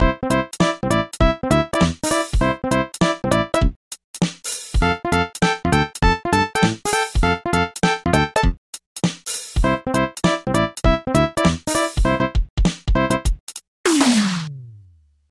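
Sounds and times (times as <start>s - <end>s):
game map music: 0.0s - 3.8s, 4.6s - 8.6s, 9.4s - 15.0s.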